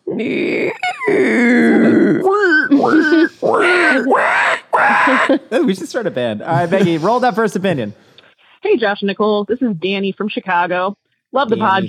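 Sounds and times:
person imitating a pig squeal with squeals and grunts: 0.0 - 5.5
speech: 0.2 - 3.6, 5.3 - 8.1, 8.7 - 11.8
laughter: 2.4 - 4.2, 4.8 - 7.6.

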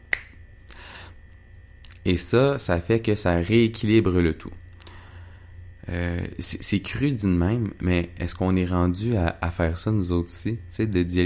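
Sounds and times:
finger snap: 0.0 - 2.0
speech: 2.0 - 4.6, 5.9 - 11.2.

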